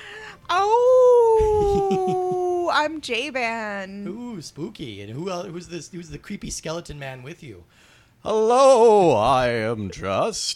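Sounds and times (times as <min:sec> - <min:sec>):
person howling like a creature: 0:00.6 - 0:02.6
speech: 0:01.9 - 0:10.5.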